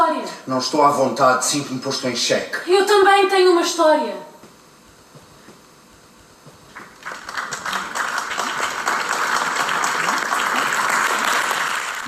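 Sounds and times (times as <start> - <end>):
speech: 0.5 - 4.3
large theater audience ovation: 6.8 - 12.0.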